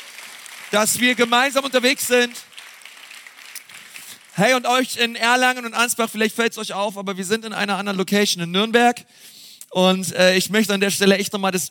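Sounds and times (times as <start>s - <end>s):
audience applause: 0.0s - 4.4s
speech: 0.7s - 2.5s, 4.4s - 11.6s.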